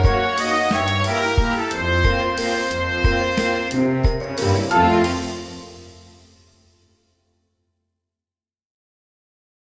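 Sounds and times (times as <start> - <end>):
toy waltz music loop: 0.0 - 6.0.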